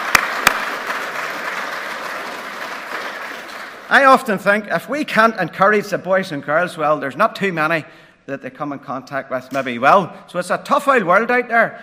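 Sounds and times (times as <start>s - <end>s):
audience applause for children: 0.0s - 4.0s
speech: 3.9s - 11.8s.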